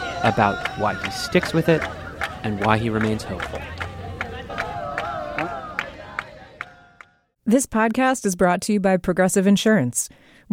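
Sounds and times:
group of people clapping outdoors: 0.0s - 7.2s
speech: 0.2s - 3.8s, 7.5s - 10.5s.

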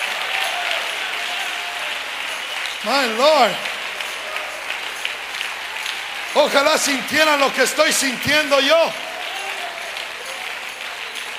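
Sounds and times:
audience applause: 0.0s - 11.3s
speech: 2.8s - 3.7s, 6.3s - 9.1s.

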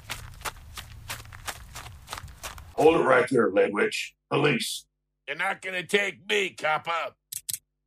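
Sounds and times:
running footsteps radio drama sound effect: 0.0s - 2.8s
speech: 2.8s - 7.2s.

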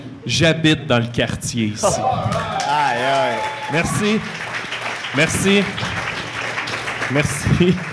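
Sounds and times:
speech: 0.2s - 4.5s, 5.1s - 6.0s, 7.1s - 7.9s
audience applause: 2.0s - 7.9s.

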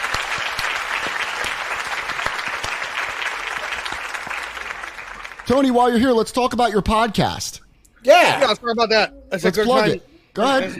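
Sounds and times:
round of applause: 0.0s - 5.8s
speech: 5.5s - 10.7s.

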